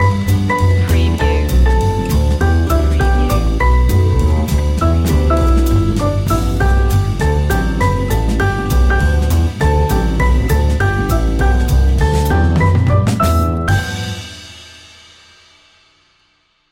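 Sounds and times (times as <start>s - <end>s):
jazz christmas tune: 0.0s - 14.7s.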